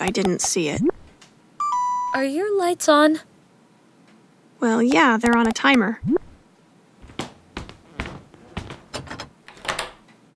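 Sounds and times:
speech: 0:00.0 - 0:01.0, 0:02.1 - 0:03.3, 0:04.6 - 0:06.2
door shutting and locking: 0:07.9 - 0:10.1.

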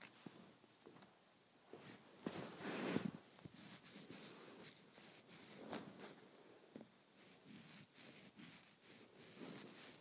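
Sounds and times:
hair being played with: 0:01.7 - 0:06.3, 0:07.2 - 0:10.0.

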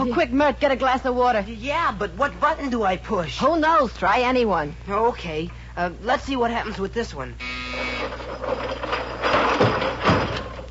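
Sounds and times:
speech: 0:00.0 - 0:08.8
furniture mechanism retracting into the wall: 0:07.8 - 0:10.6.

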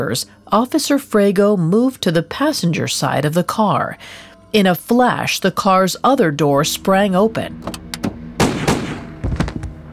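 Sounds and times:
speech: 0:00.0 - 0:07.8
.357 Magnum revolver gunshots: 0:08.4 - 0:09.5
soft knocks and thuds: 0:09.2 - 0:09.8.

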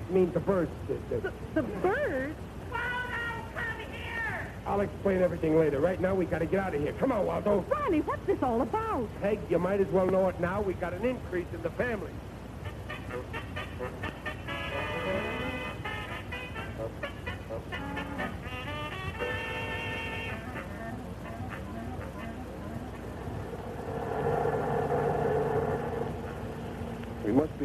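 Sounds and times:
speech: 0:00.1 - 0:02.6, 0:04.7 - 0:12.3
bus engine rumbling while driving: 0:00.8 - 0:04.8, 0:10.2 - 0:27.6.

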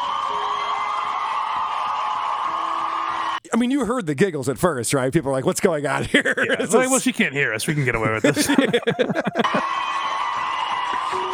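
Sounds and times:
crowd cheering and applauding in a standing ovation: 0:00.0 - 0:03.4, 0:08.4 - 0:11.3
speech: 0:03.6 - 0:09.9
laughter: 0:05.9 - 0:10.0.

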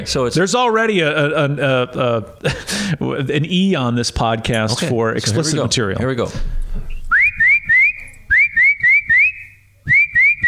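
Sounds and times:
speech: 0:00.0 - 0:06.6
person whistling an imitation of a tufted titmouse call: 0:07.1 - 0:10.4.

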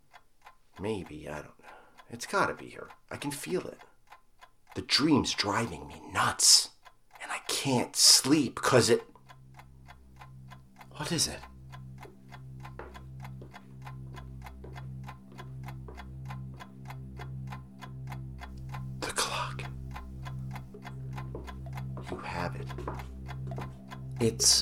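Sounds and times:
pendulum clock ticking: 0:00.0 - 0:24.6
speech: 0:00.8 - 0:03.9, 0:04.8 - 0:06.7, 0:07.5 - 0:09.1, 0:11.0 - 0:11.5, 0:24.4 - 0:24.6
brief breathy noises: 0:19.0 - 0:24.6.

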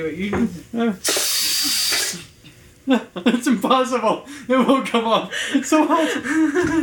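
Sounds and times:
speech: 0:00.0 - 0:01.2, 0:02.9 - 0:06.8
pressure cooker hissing: 0:01.0 - 0:02.4
laughter: 0:02.9 - 0:03.7, 0:04.5 - 0:06.8.

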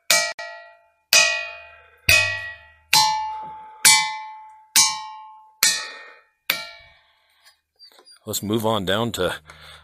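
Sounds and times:
ringing rock struck with metallic tone: 0:00.0 - 0:06.9
speech: 0:08.2 - 0:09.8.

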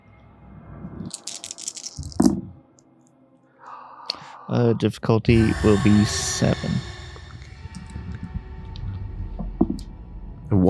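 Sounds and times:
dice rattling in a hand or cup and landing: 0:01.1 - 0:02.4
speech: 0:04.5 - 0:06.9.

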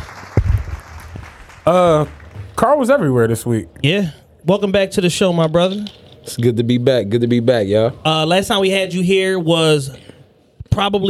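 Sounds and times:
soundboard clapping effect: 0:00.0 - 0:02.6
speech: 0:01.7 - 0:10.1, 0:10.7 - 0:11.0.

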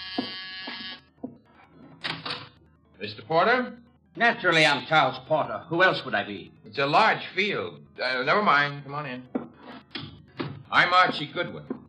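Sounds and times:
door buzzer ringing: 0:00.0 - 0:01.1
speech: 0:03.0 - 0:09.4, 0:10.7 - 0:11.7.

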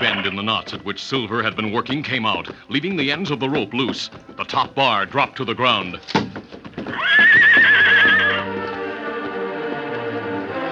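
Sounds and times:
speech: 0:00.0 - 0:06.3, 0:06.9 - 0:07.8
stallion neighing and trumpeting: 0:06.9 - 0:08.5.

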